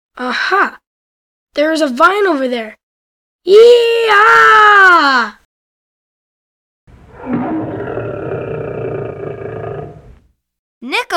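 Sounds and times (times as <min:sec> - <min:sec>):
speech: 0:00.2 - 0:00.8, 0:01.6 - 0:02.8, 0:03.4 - 0:05.4, 0:10.8 - 0:11.1
lion roaring: 0:07.0 - 0:10.2.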